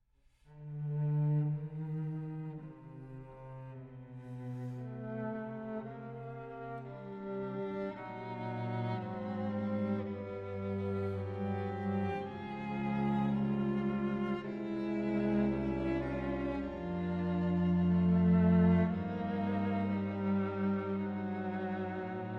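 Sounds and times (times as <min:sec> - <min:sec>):
string quartet: 0:00.5 - 0:22.3.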